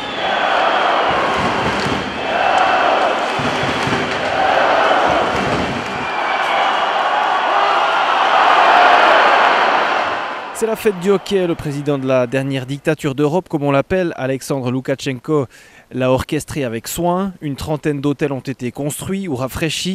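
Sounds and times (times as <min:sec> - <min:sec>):
Belarusian hockey crowd cheering in a packed ice rink: 0:00.0 - 0:12.9
speech: 0:10.7 - 0:19.9.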